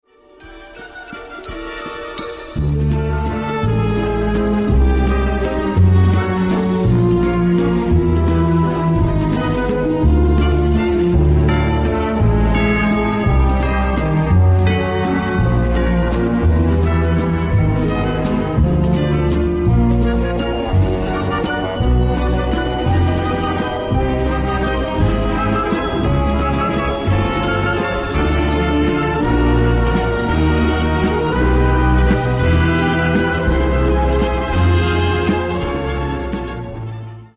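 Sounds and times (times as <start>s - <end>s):
bell waltz: 0.4s - 37.3s.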